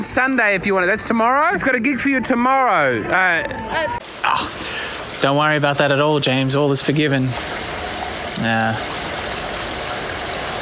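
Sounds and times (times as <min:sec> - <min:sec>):
speech: 0:00.0 - 0:07.7, 0:08.4 - 0:09.0
steady rain: 0:03.7 - 0:10.5.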